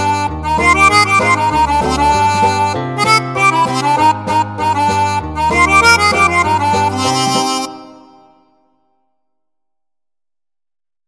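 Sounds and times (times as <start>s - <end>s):
virtual harmonica VST plugin: 0.0s - 8.6s.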